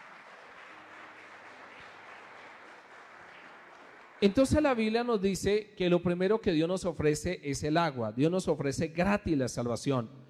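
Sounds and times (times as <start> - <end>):
audience applause: 0.0 - 4.6
speech: 4.2 - 10.2.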